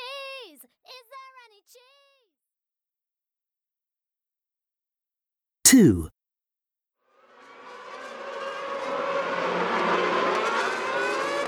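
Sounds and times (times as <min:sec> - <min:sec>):
speech: 0:05.7 - 0:06.1
racing car engines roaring during a race as Lewis Hamilton overtakes: 0:07.8 - 0:11.4.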